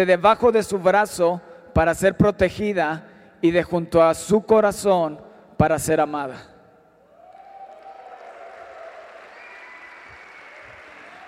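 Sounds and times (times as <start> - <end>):
speech: 0.0 - 6.5
audience applause: 7.2 - 11.2.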